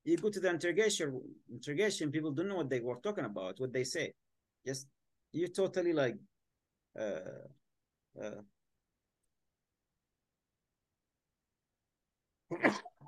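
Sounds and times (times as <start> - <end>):
speech: 0.0 - 6.3, 7.0 - 7.6, 8.2 - 8.5, 12.5 - 13.0
sneeze: 12.5 - 13.0.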